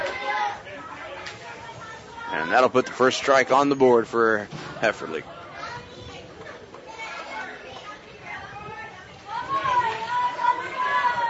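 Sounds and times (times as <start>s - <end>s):
children shouting in ballpark stands: 0.0s - 2.6s, 5.5s - 11.2s
crowd cheering in ballpark stands: 0.0s - 2.7s, 5.5s - 11.2s
crowd babble in ballpark stands: 0.0s - 11.2s
speech: 2.3s - 5.4s.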